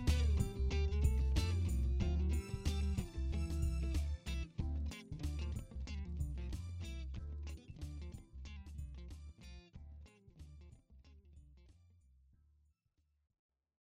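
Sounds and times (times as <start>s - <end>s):
funk music: 0.0s - 10.7s.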